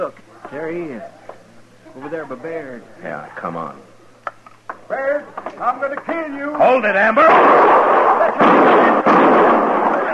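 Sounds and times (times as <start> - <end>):
speech: 0.0 - 1.2, 2.0 - 3.9, 4.9 - 9.0
rifle gunshots in a western: 7.3 - 10.0.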